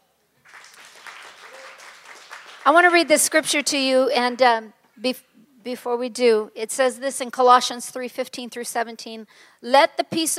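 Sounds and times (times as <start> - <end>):
congregation clapping during a church service: 0.4 - 3.6
speech: 2.6 - 10.3.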